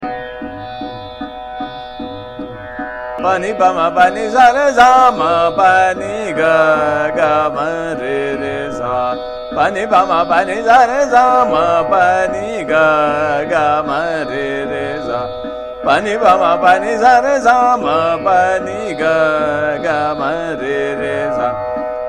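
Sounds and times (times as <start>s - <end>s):
sargam singing in Nayaki Kanada with Trital: 0.0s - 22.0s.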